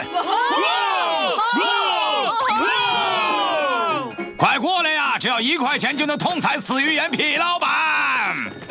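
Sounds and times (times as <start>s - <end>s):
crowd giving cheers: 0.1s - 4.2s
speech: 5.3s - 8.6s.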